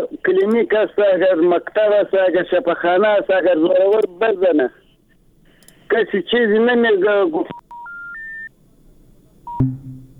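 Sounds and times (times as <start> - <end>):
speech: 0.0 - 4.8, 5.9 - 7.6, 9.6 - 9.8
telephone line call-drop signal beeps stepping upward in pitch: 7.6 - 8.5, 9.5 - 9.8
low buzzing hum: 9.0 - 10.1.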